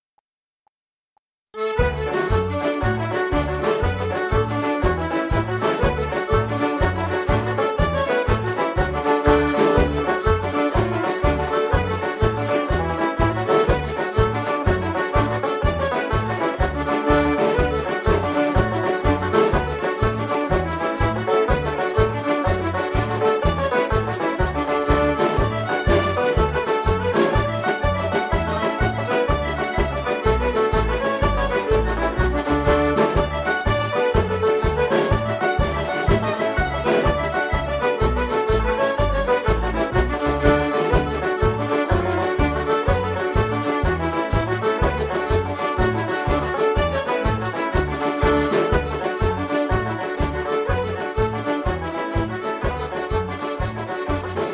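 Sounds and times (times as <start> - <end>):
traditional Irish backing track in D: 1.5 - 54.5.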